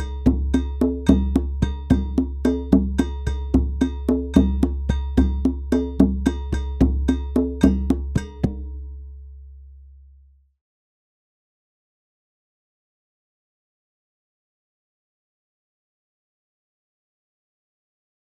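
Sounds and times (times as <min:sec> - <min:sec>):
Latin American Ibo rhythm: 0:00.0 - 0:08.6.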